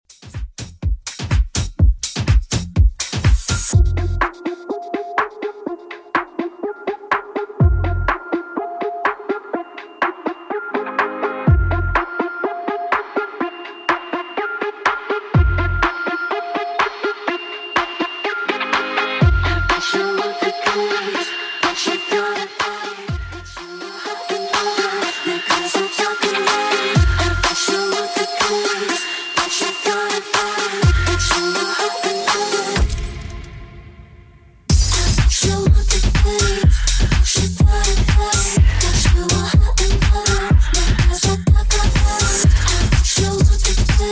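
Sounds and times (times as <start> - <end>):
moombahton music: 0.0 - 44.1.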